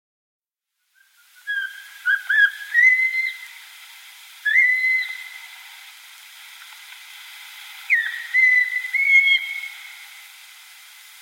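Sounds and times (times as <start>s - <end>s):
Eurasian pygmy owl piping whistles: 1.0s - 3.5s, 4.4s - 5.4s, 7.9s - 10.0s.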